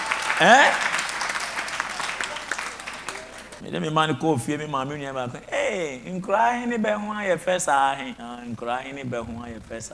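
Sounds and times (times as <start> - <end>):
crowd clapping: 0.0 - 3.6
speech: 0.4 - 0.9, 3.6 - 9.9.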